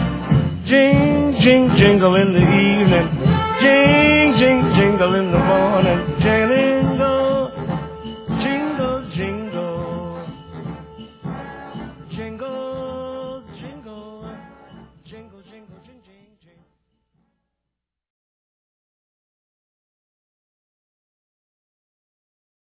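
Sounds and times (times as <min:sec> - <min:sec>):
Christmas song: 0:00.0 - 0:16.7.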